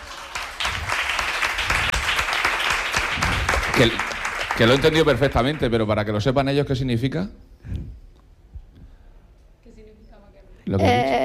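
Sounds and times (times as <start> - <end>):
audience applause: 0.0 - 5.9
speech: 3.8 - 7.8, 10.7 - 11.2.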